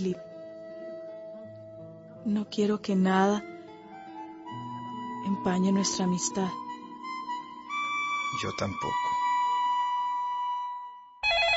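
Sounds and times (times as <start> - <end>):
speech: 0.0 - 0.3, 2.2 - 3.5, 5.4 - 6.6, 8.4 - 9.2
louder buzzy ring: 4.8 - 11.5
telephone ringing: 11.2 - 11.5.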